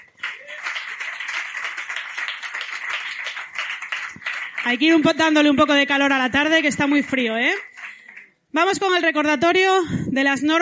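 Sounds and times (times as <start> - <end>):
audience applause: 0.0 - 5.3
speech: 4.6 - 7.7, 8.6 - 10.6.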